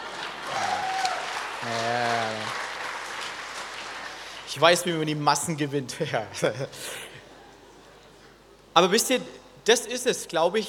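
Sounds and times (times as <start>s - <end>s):
audience clapping: 0.0s - 5.0s
speech: 4.5s - 7.0s, 8.8s - 10.6s.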